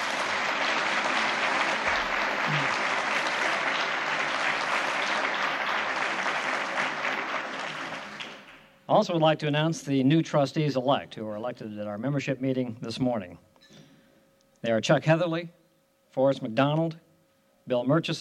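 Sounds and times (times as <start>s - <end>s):
audience applause: 0.0s - 8.7s
speech: 8.9s - 13.5s, 14.6s - 15.6s, 16.2s - 17.0s, 17.6s - 18.1s.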